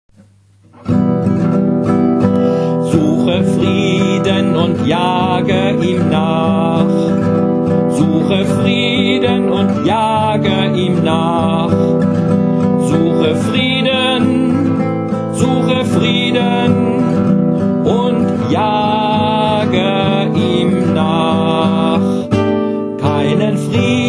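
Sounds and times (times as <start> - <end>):
lied art song: 0.2 - 24.0.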